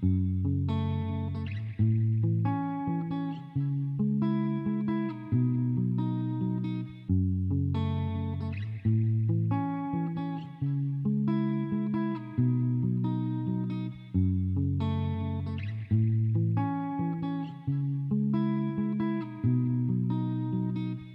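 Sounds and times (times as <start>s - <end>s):
main guitar loop in E major at 136 BPM: 0.0s - 21.1s.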